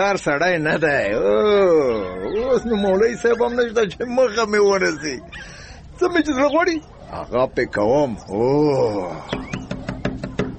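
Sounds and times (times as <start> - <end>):
speech: 0.0 - 9.6
knocking on the door of a village guest room: 9.3 - 10.5.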